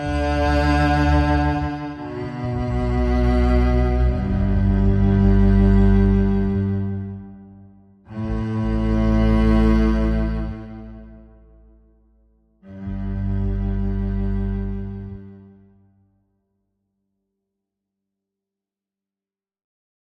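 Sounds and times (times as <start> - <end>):
solo cello playing: 0.0 - 16.0.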